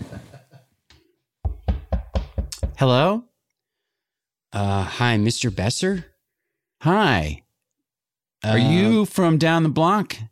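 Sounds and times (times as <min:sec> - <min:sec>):
heavy knocking on a door: 0:01.4 - 0:02.8
speech: 0:02.8 - 0:03.3, 0:04.5 - 0:06.1, 0:06.8 - 0:07.4, 0:08.4 - 0:10.3.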